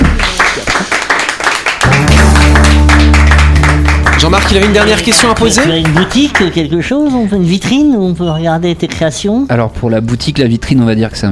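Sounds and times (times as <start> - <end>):
small group applause: 0.0 - 6.7
speech: 4.3 - 11.3.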